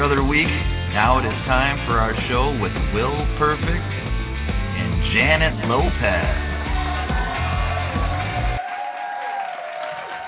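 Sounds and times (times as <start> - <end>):
speech: 0.0 - 4.1, 5.2 - 6.5
crowd cheering: 5.8 - 10.2.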